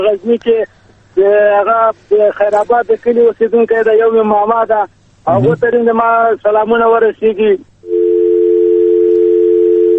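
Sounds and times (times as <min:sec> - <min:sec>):
speech: 0:00.0 - 0:07.7
telephone tone after a call is cut off: 0:07.8 - 0:09.9.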